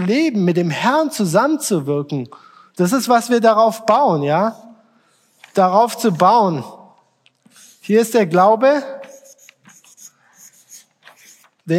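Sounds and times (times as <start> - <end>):
speech: 0.0 - 4.7, 5.6 - 6.8, 7.9 - 9.0
someone writing by hand: 7.4 - 8.3, 9.0 - 11.7.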